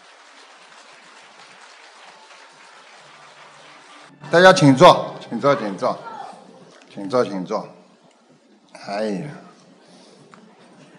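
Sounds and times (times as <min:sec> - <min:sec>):
audience applause: 0:00.0 - 0:04.2
speech: 0:04.3 - 0:06.1, 0:07.0 - 0:07.8, 0:08.8 - 0:09.4.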